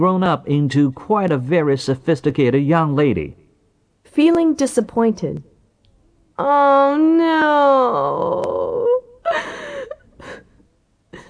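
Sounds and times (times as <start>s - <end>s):
speech: 0.0s - 3.4s, 4.1s - 5.5s, 6.4s - 8.6s
disappointed teenage girl sobbing: 6.4s - 11.2s.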